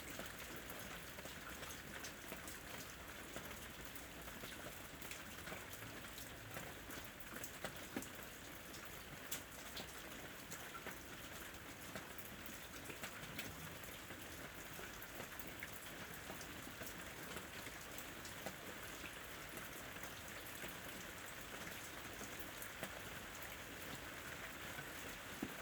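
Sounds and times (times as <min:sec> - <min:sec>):
rain: 0:00.0 - 0:25.6.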